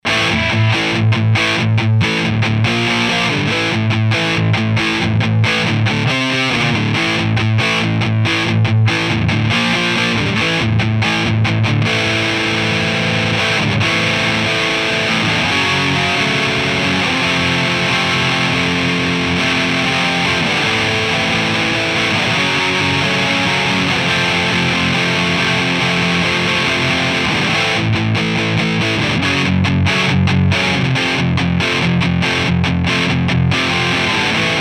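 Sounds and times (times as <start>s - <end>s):
distorted amplifier: 0.0s - 34.5s.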